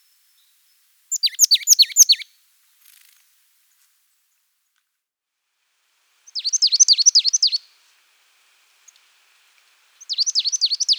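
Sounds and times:
marsh tit call of sharp high falling notes: 1.1 - 2.2, 6.3 - 7.6, 10.0 - 10.9.

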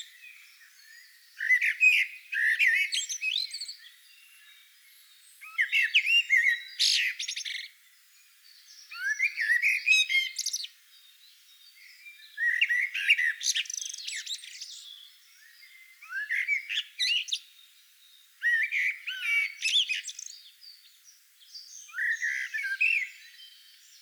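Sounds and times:
common blackbird singing: 0.0 - 7.7, 8.5 - 23.9.

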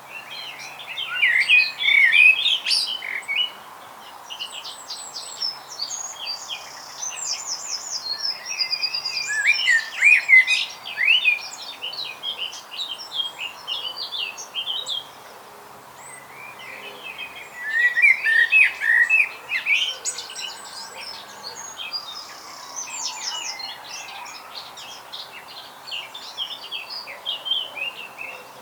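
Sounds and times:
Eurasian blackbird singing: 0.2 - 3.6, 4.7 - 15.2, 16.0 - 28.5.

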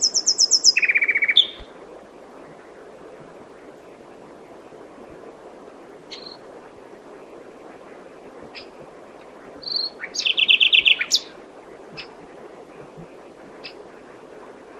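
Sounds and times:
common nightingale Luscinia megarhynchos singing: 0.0 - 1.7, 6.1 - 6.4, 8.5 - 8.8, 9.6 - 12.2, 13.6 - 13.9.

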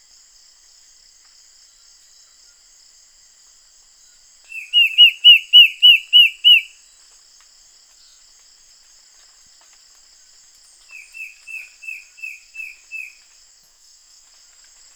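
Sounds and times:
bird whistling: 4.6 - 6.7.

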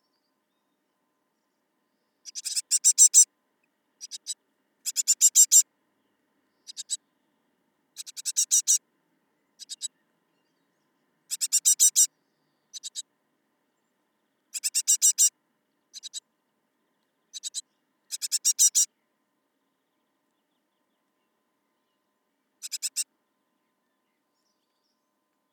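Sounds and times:
Great tit Parus major giving harsh buzzy calls: 2.2 - 3.3, 4.0 - 5.6, 6.6 - 7.0, 8.0 - 8.8, 9.6 - 9.9, 11.3 - 12.1, 12.7 - 13.0, 14.5 - 15.3, 15.9 - 16.2, 17.3 - 18.9, 22.6 - 23.1.

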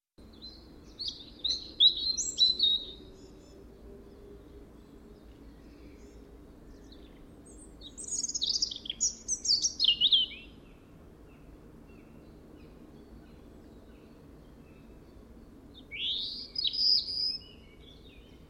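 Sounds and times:
Erithacus rubecula: 0.2 - 18.4.

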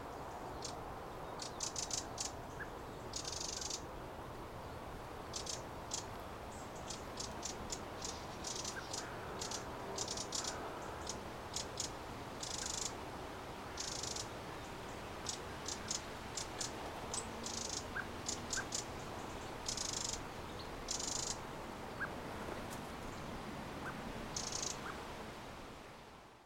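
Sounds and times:
hiss: 0.0 - 26.4
Eurasian wren ticking and churring: 1.4 - 3.8, 5.3 - 13.0, 13.7 - 14.3, 15.0 - 21.4, 24.3 - 24.9.

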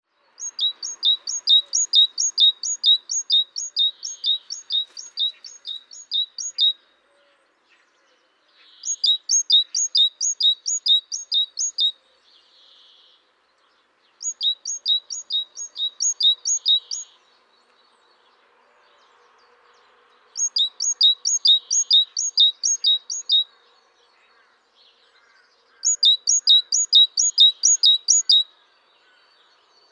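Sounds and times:
great tit song: 0.4 - 6.8, 8.8 - 11.9, 14.2 - 17.2, 20.4 - 23.5, 25.7 - 28.5.

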